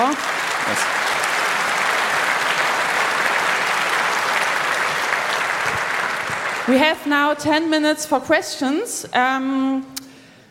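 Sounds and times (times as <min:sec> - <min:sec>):
audience applause: 0:00.0 - 0:07.4
speech: 0:06.7 - 0:10.0.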